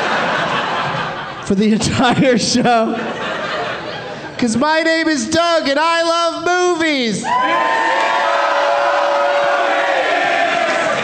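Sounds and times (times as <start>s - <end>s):
crowd cheering at a live movie-review show: 0.0s - 1.4s, 7.2s - 11.0s
laughter: 0.0s - 4.6s
speech: 1.5s - 3.4s, 4.4s - 8.2s.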